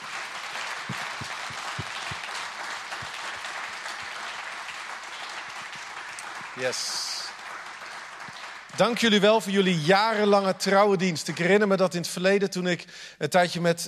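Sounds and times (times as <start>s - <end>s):
audience applause: 0.0s - 9.6s
speech: 6.6s - 7.1s, 8.8s - 13.8s.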